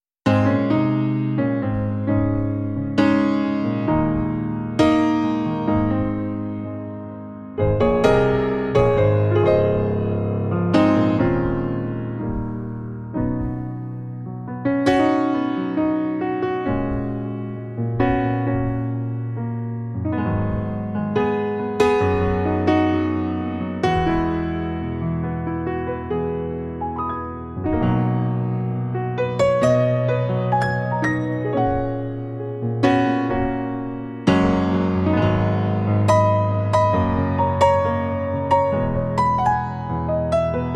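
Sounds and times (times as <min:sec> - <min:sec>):
relaxing piano music: 0:00.3 - 0:40.7.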